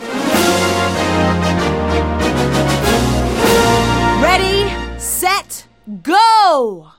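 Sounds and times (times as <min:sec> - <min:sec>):
start fanfare: 0:00.0 - 0:05.6.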